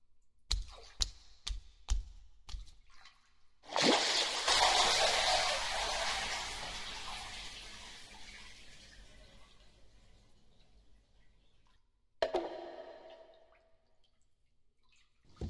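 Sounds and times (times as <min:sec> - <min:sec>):
water dripping: 0:00.5 - 0:15.4.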